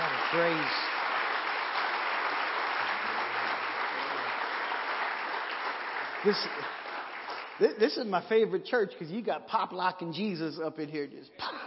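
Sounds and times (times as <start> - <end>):
audience clapping hands: 0.0 - 8.6
speech: 0.3 - 0.9, 6.2 - 6.8, 7.6 - 11.6.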